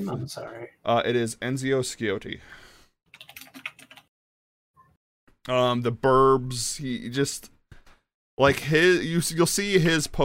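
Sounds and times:
speech: 0.0 - 3.3, 5.5 - 7.5, 8.4 - 10.2
typing a name on a computer keyboard: 3.1 - 4.1.

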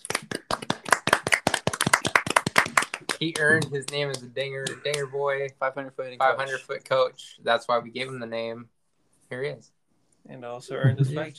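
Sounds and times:
audience clapping: 0.0 - 5.1
speech: 3.2 - 11.3.

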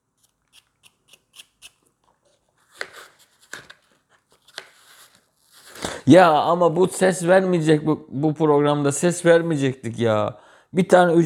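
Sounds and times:
knife peeling an apple: 0.0 - 6.0
speech: 6.1 - 11.2.

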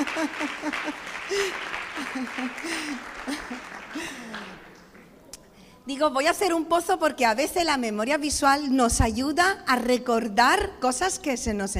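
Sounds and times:
laughter: 0.0 - 4.9
audience applause: 0.0 - 5.2
speech: 0.2 - 4.6, 5.9 - 11.7.

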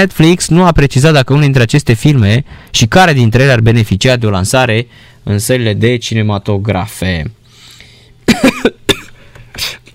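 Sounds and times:
speech: 0.0 - 7.4
person coughing from choking on a swallow: 8.2 - 9.9.

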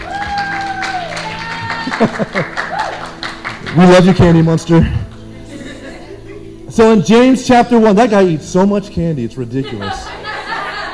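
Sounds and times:
audience clapping hands: 0.0 - 5.2
laughter: 1.6 - 2.8, 5.3 - 6.7, 9.6 - 10.9
speech: 2.0 - 2.6, 3.7 - 5.0, 6.8 - 10.0.

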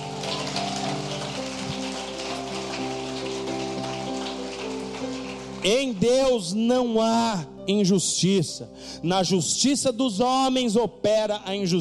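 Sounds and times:
audience applauding: 0.0 - 6.5
speech: 5.6 - 11.7.

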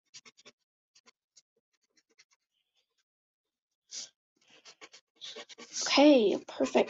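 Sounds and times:
eraser rubbing out lines inside a sketched character's face: 4.7 - 6.8
speech: 6.0 - 6.8.

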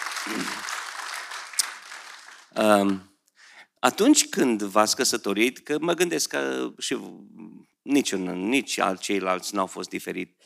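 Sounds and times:
audience applause: 0.0 - 3.0
speech: 0.2 - 0.7, 2.6 - 3.1, 3.8 - 10.4.

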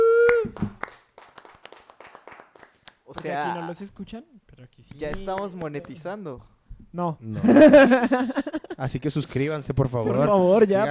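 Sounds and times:
crowd people clapping: 0.0 - 3.6, 4.9 - 6.2
speech: 3.2 - 10.8
laughter: 7.3 - 8.8.

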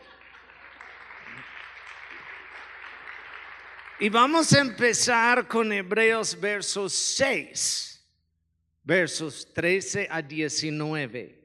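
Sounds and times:
audience applause: 0.0 - 4.7
speech: 4.0 - 7.9, 8.8 - 11.4.

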